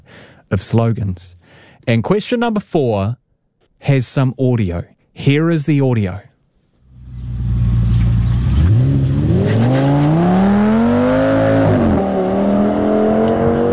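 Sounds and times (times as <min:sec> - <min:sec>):
speech: 0:00.5 - 0:03.2, 0:03.8 - 0:06.3
car engine accelerating hard: 0:06.8 - 0:13.7.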